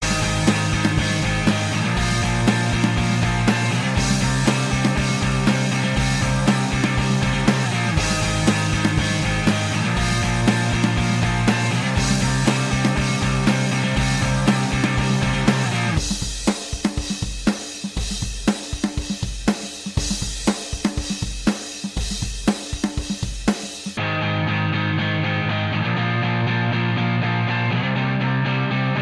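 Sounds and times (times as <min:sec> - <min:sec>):
rock instrumental: 0:00.0 - 0:29.0.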